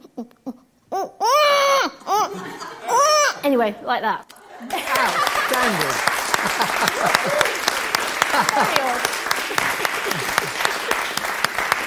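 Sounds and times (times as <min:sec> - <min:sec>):
speech: 0:00.2 - 0:00.6, 0:03.5 - 0:07.7
laughter: 0:02.0 - 0:03.5, 0:04.3 - 0:11.8
round of applause: 0:04.7 - 0:11.8.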